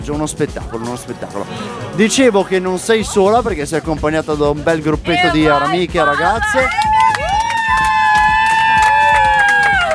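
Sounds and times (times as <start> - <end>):
speech: 0.0 - 7.0
group of friends applauding and cheering at a party: 5.2 - 9.9.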